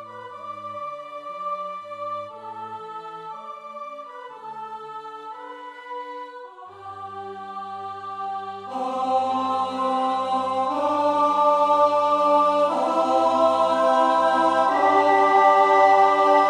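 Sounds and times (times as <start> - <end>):
tenor voice: 8.7 - 16.4.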